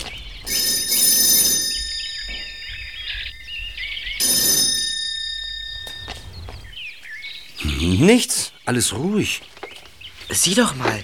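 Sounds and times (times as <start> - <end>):
thin chirping high tones: 0.0 - 8.0
electric doorbell ringing: 0.5 - 6.9
speech: 8.0 - 9.6, 10.3 - 11.0.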